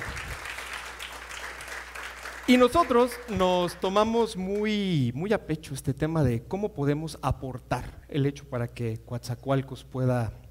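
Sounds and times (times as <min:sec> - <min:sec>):
audience applause: 0:00.0 - 0:03.9
speech: 0:02.5 - 0:10.4.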